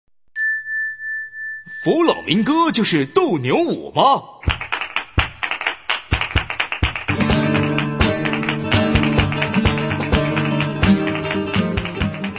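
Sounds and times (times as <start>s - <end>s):
speech: 1.8s - 4.3s
foot stomping: 4.4s - 5.5s, 6.1s - 12.3s
clapping: 4.4s - 12.3s
rhythmic guitar: 6.8s - 12.3s.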